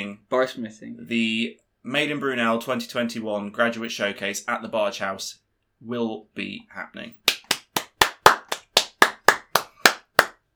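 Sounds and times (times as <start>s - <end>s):
speech: 0.0s - 7.2s
hand clapping: 7.3s - 10.4s.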